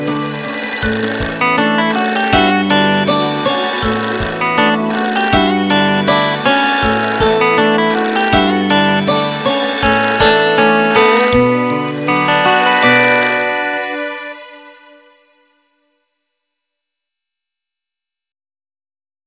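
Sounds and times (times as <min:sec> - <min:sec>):
airy polyphonic music: 0:00.0 - 0:15.3.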